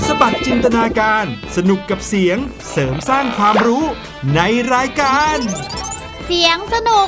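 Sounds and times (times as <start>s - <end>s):
bubbles being blown, popping with plops: 0.2s - 1.1s
speech: 0.2s - 7.0s
bright layered sound: 5.1s - 6.3s.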